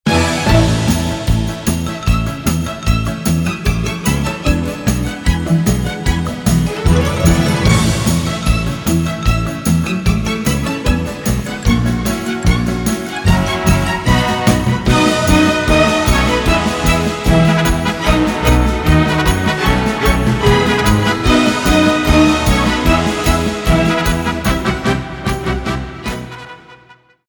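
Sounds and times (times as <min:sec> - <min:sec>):
polka music: 0:00.1 - 0:27.1.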